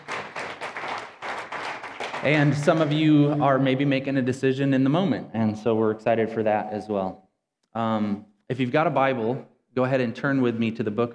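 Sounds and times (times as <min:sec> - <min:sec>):
audience clapping: 0:00.0 - 0:03.8
speech: 0:02.2 - 0:11.1.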